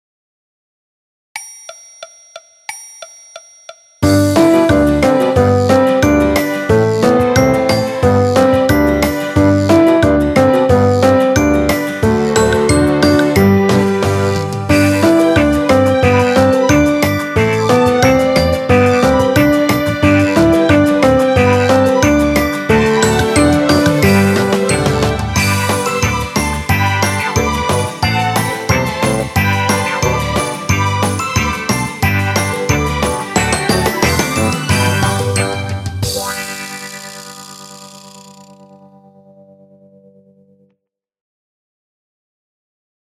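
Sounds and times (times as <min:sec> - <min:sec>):
orchestra playing: 0:04.0 - 0:36.9
piano: 0:04.0 - 0:40.7.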